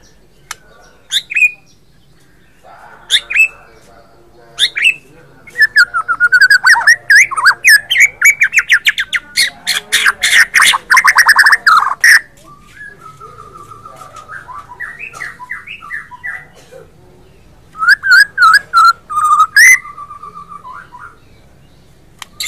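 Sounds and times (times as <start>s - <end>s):
White-rumped Shama song: 4.6s - 16.6s, 17.7s - 21.5s, 22.2s - 22.4s.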